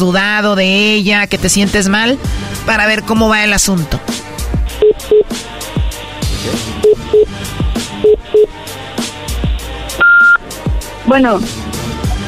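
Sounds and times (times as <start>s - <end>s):
speech: 0.0s - 4.2s, 6.4s - 7.6s, 11.1s - 11.7s
busy music: 0.0s - 12.2s
telephone number being dialed: 10.0s - 10.4s.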